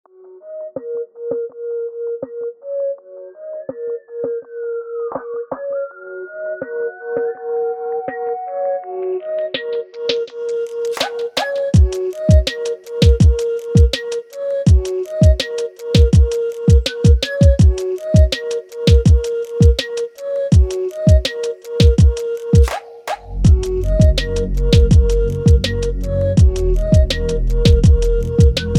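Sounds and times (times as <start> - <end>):
music beat: 6.6 - 28.7.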